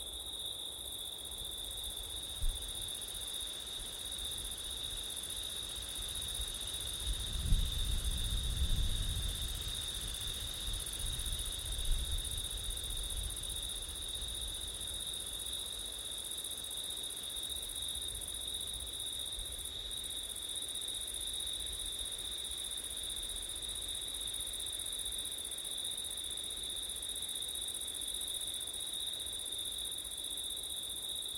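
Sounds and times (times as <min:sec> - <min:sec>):
crickets trilling: 0:00.1 - 0:31.3
wind rumble: 0:07.1 - 0:12.4.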